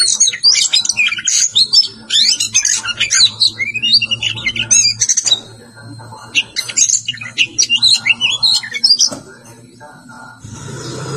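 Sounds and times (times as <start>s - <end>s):
Oriental magpie-robin singing: 0.0s - 5.6s, 6.2s - 9.2s.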